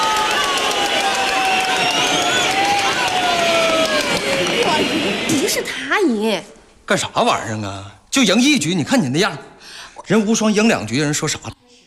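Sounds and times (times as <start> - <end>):
audience applause: 0.0 - 5.8
speech: 5.6 - 9.5, 10.1 - 11.6.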